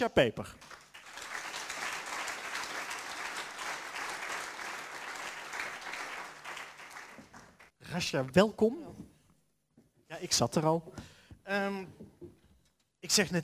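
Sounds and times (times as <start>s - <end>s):
speech: 0.0s - 0.8s, 7.9s - 9.1s, 10.1s - 12.4s, 13.0s - 13.4s
studio audience applause: 0.6s - 7.7s.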